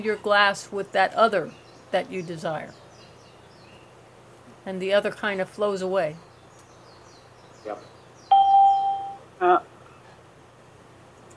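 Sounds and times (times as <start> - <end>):
speech: 0.0 - 2.8, 4.6 - 6.3, 7.6 - 7.9, 9.4 - 9.7
electronic chimes from a call system: 8.3 - 9.2.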